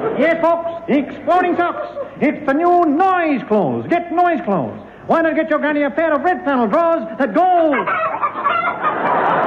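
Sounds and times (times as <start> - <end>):
speech: 0.2 - 8.1
cackling hen sound effect: 7.6 - 9.3.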